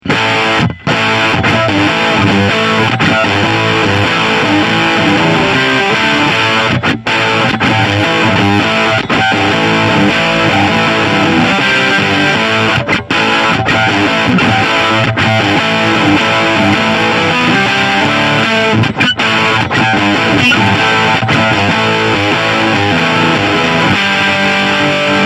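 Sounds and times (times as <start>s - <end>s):
tweaked fuzz distortion tone: 0.0s - 25.2s.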